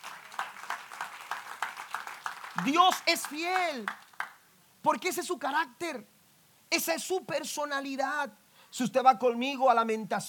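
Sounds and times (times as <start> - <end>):
crowd clapping in a steady rhythm: 0.0 - 4.4
speech: 2.6 - 4.0, 4.8 - 6.1, 6.7 - 10.2.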